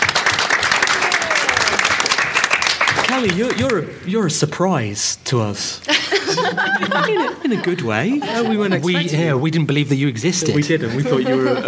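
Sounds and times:
audience applause: 0.0s - 3.8s
speech: 3.2s - 11.6s
laughter: 5.8s - 9.3s, 10.6s - 11.6s.

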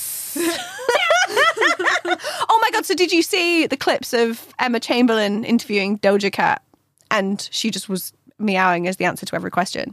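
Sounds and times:
person hissing: 0.0s - 0.6s
laughter: 0.4s - 2.4s
speech: 2.1s - 9.9s.

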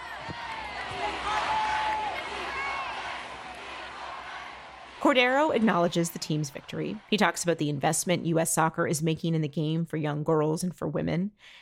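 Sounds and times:
large crowd chanting in unison: 0.0s - 7.6s
speech: 5.0s - 11.5s.

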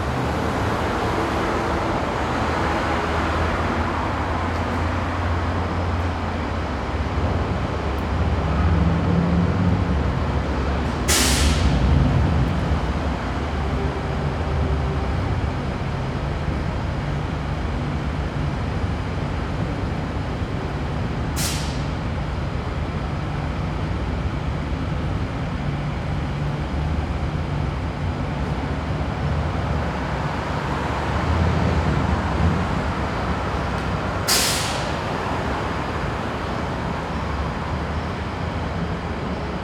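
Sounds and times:
traffic of passing vehicles: 0.0s - 39.6s
air brakes hissing: 11.1s - 11.8s, 21.3s - 22.0s, 34.2s - 35.1s.

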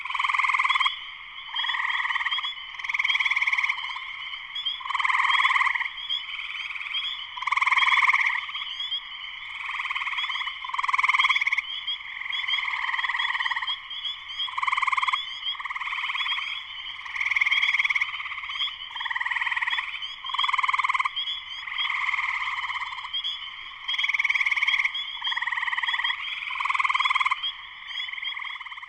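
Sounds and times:
spring peeper chorus peeping: 0.0s - 28.8s.

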